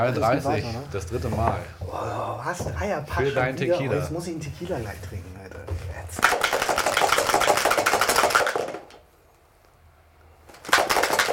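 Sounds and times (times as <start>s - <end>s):
speech: 0.0s - 6.4s
dice being rolled: 6.2s - 9.0s.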